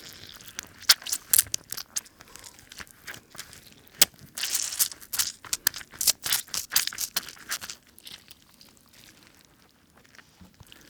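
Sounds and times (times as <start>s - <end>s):
flesh stabbing and tearing: 0.7s - 7.8s.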